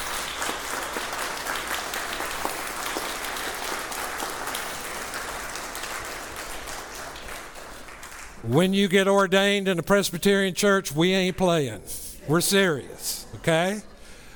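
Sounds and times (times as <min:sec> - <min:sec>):
audience applauding: 0:00.0 - 0:08.4
speech: 0:08.5 - 0:13.9.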